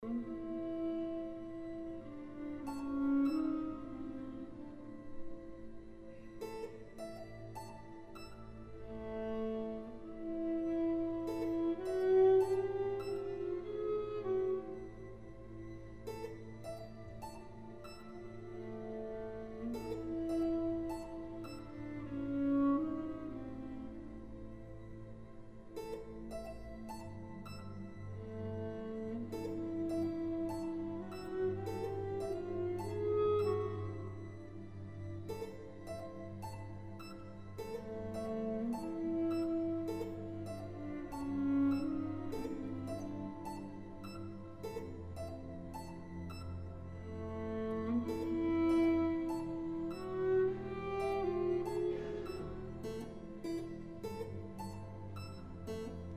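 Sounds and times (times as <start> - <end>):
viola concerto: 0.0 - 56.1.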